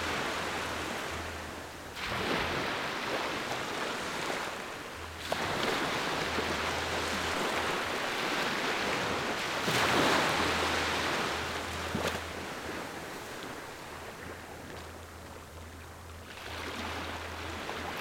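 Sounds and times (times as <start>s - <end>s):
beach waves in Fiji: 0.0s - 17.9s.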